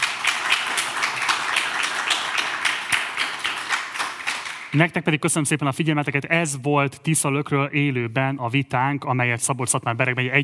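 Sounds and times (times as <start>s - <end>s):
applause for candidates: 0.0s - 4.8s
speech: 4.7s - 10.4s.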